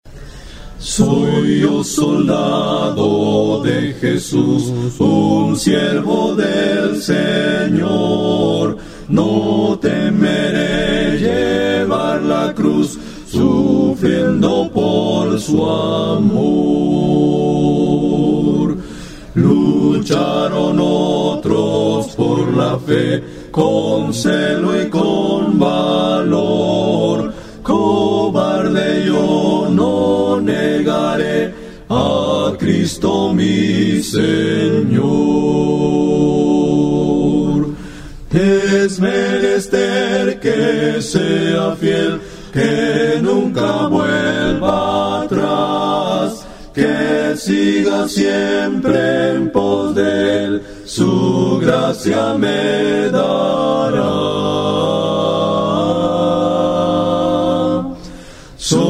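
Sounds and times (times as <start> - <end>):
hymn melody with words: 0.6 - 58.8.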